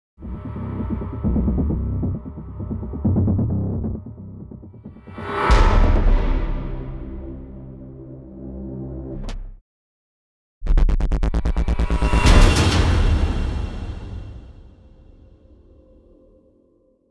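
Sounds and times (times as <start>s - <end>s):
music: 0.2s - 9.6s, 10.6s - 17.0s.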